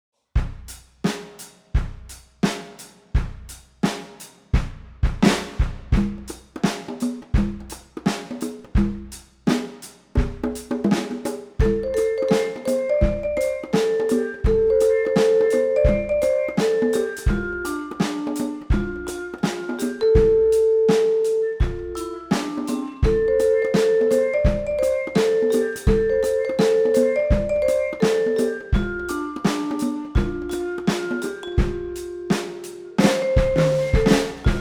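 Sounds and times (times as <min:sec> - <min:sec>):
percussion ensemble: 0:00.4 - 0:34.5.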